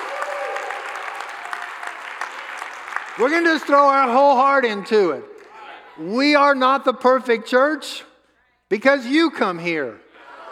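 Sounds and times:
audience clapping: 0.0 - 4.8
speech: 3.2 - 5.3, 6.0 - 8.1, 8.7 - 10.0
laughter: 10.1 - 10.4.

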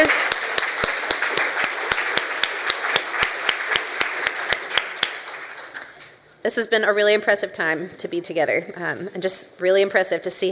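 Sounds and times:
audience round of applause: 0.0 - 5.9
speech: 6.6 - 10.5.

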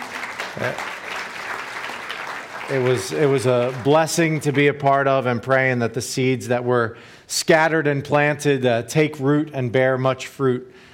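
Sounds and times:
audience applause: 0.0 - 4.6
speech: 0.6 - 1.0, 2.7 - 10.9.

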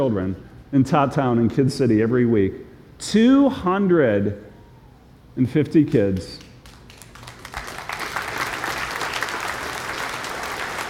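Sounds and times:
speech: 0.0 - 4.5, 5.4 - 6.4
audience applause: 6.6 - 10.8.

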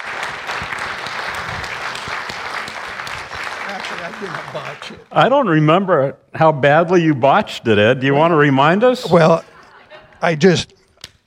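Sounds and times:
audience applause welcoming a speaker on stage: 0.0 - 5.1
speech: 3.9 - 9.5, 10.2 - 10.8
laughter: 8.9 - 10.7.

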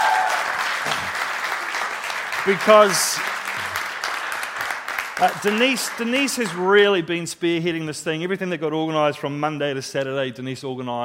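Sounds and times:
audience applause: 0.0 - 7.0
speech: 2.4 - 3.3, 5.2 - 11.0.

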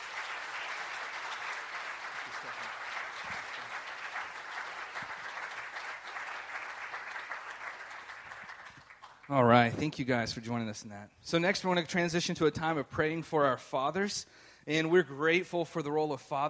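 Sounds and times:
audience applause: 0.0 - 9.6
speech: 9.3 - 16.4.

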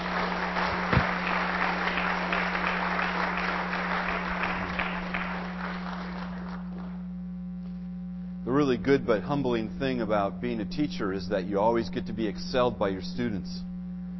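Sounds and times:
audience applause: 0.0 - 7.0
speech: 8.6 - 13.7.

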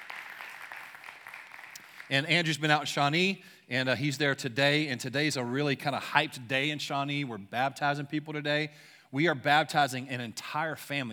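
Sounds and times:
audience applause: 0.0 - 2.2
speech: 2.1 - 11.1.

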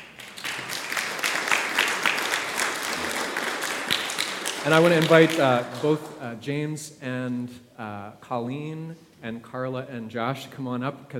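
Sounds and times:
round of applause: 0.0 - 6.3
speech: 4.6 - 11.1.

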